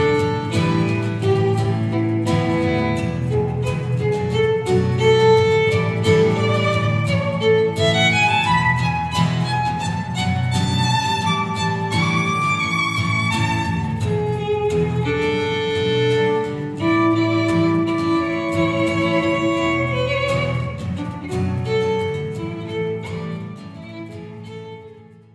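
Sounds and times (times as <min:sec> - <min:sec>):
bittersweet guitar playing: 0:00.0 - 0:25.3.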